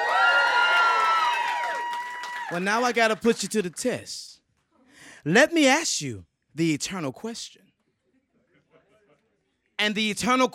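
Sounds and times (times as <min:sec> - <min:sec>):
audience cheering: 0:00.0 - 0:03.8
speech: 0:02.5 - 0:04.4, 0:05.2 - 0:07.7, 0:09.8 - 0:10.5.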